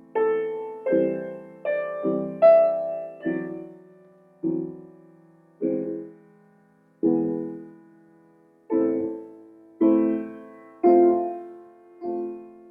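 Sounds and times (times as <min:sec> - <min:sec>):
improvised piano in A minor: 0:00.0 - 0:12.6.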